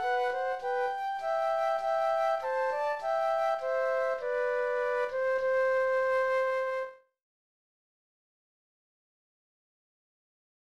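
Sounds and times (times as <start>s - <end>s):
flute duet: 0.0s - 7.1s.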